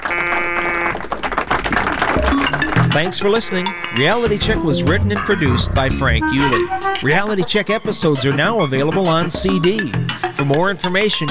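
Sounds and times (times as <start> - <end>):
game show buzzer being pressed repeatedly: 0.0 - 1.0, 2.2 - 6.4
speech: 3.0 - 11.3.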